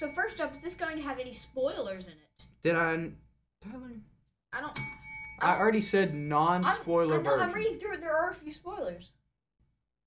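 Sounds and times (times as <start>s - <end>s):
bell ringing: 0.0s - 1.4s, 4.8s - 7.7s
speech: 0.0s - 9.2s.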